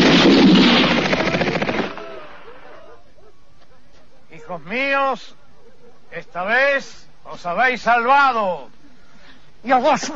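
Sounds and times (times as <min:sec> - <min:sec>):
gunfire from a firing squad: 0:00.0 - 0:02.4
speech: 0:04.5 - 0:05.4, 0:06.1 - 0:08.8, 0:09.6 - 0:10.1.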